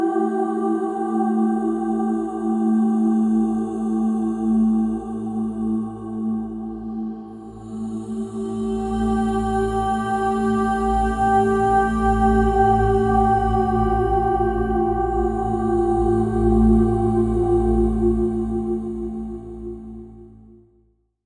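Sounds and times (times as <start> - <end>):
ambient drone: 0.2 - 20.5.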